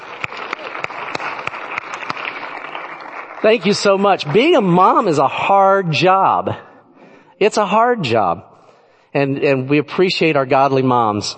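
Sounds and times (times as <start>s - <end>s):
audience applause: 0.0s - 5.3s
speech: 3.4s - 6.7s, 7.4s - 8.5s, 9.1s - 11.3s.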